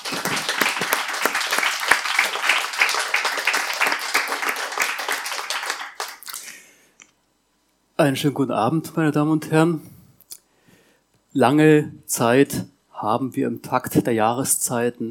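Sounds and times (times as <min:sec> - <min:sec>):
audience applause: 0:00.0 - 0:06.4
speech: 0:08.0 - 0:09.9, 0:11.4 - 0:15.0.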